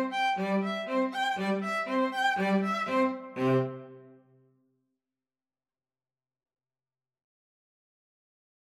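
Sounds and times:
violin and cello duet: 0.0s - 4.1s.

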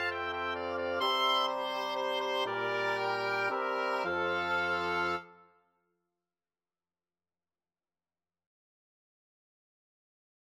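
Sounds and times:
wind quartet playing a Christmas carol: 0.0s - 5.4s.

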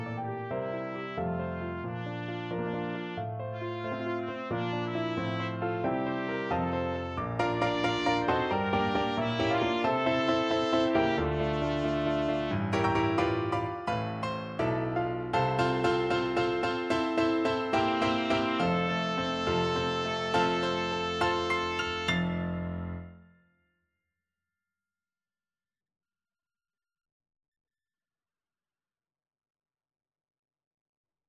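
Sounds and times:
trumpet playing a classical song: 0.0s - 23.2s.

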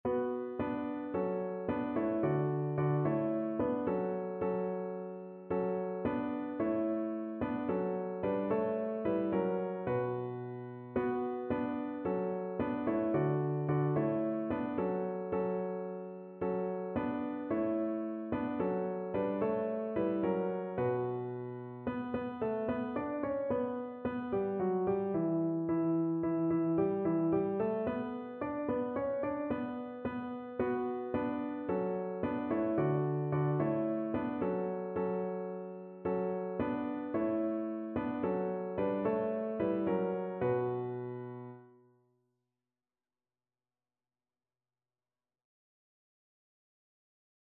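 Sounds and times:
piano: 0.0s - 42.0s.

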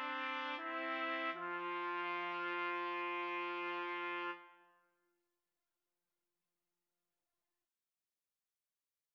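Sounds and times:
trumpet karaoke backing track: 0.0s - 4.6s.

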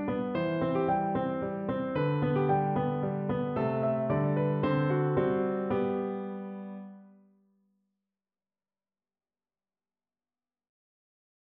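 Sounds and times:
piano sonatina: 0.0s - 7.3s.

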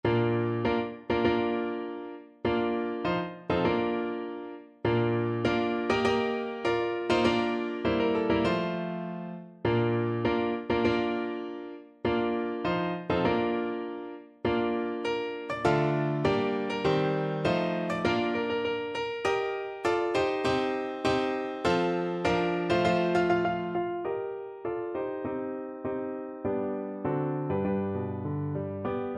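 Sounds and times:
bridal march on piano: 0.0s - 29.1s.

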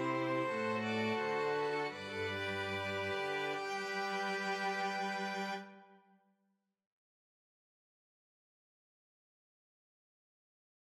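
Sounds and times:
string quartet: 0.0s - 6.0s.

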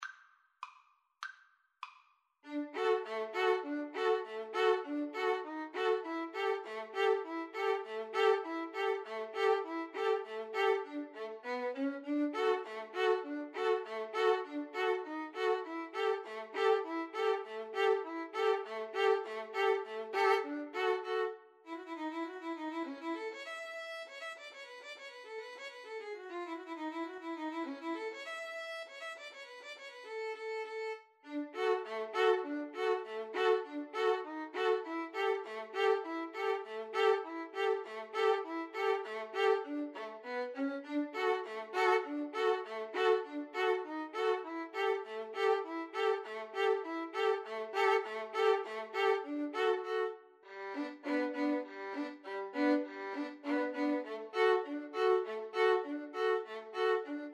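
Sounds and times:
violin duet: 2.4s - 57.3s
clarinet polka: 2.5s - 21.4s, 31.5s - 57.3s.

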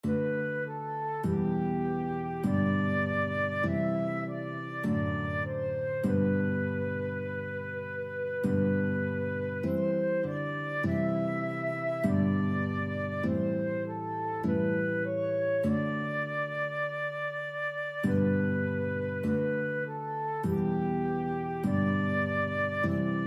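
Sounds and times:
flute: 0.0s - 23.2s
guitar: 0.0s - 23.2s.

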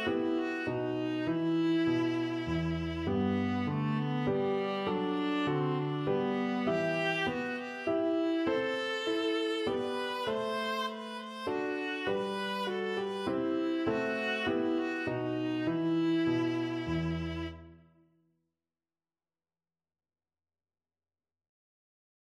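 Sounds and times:
viola playing an air: 0.0s - 17.8s.

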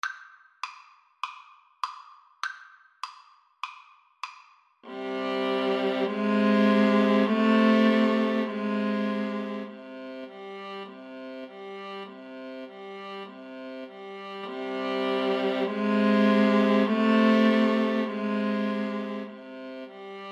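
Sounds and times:
viola duet: 4.9s - 20.3s.

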